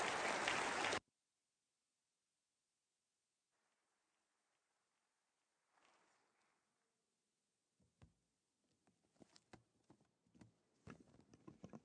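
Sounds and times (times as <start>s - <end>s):
church congregation clapping to welcome a guest speaker: 0.0s - 1.0s.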